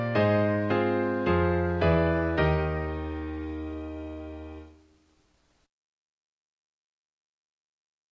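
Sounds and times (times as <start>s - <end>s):
piano piece: 0.0s - 5.0s.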